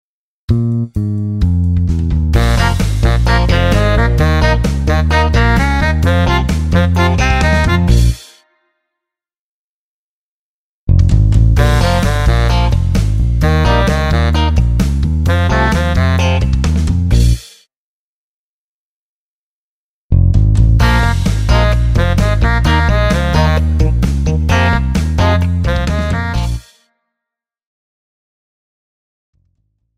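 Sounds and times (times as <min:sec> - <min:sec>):
instrumental in 4/4: 0:00.5 - 0:08.4, 0:11.0 - 0:17.4, 0:20.2 - 0:26.8.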